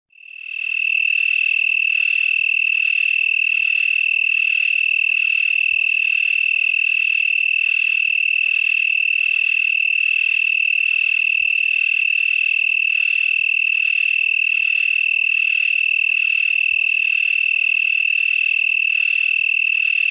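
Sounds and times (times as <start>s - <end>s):
broad-winged tree cricket trilling steadily on one high note: 0.1s - 20.0s.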